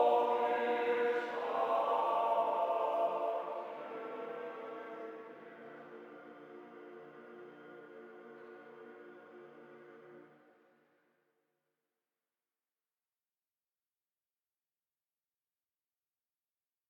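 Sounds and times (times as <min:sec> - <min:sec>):
choir singing: 0:00.0 - 0:10.5.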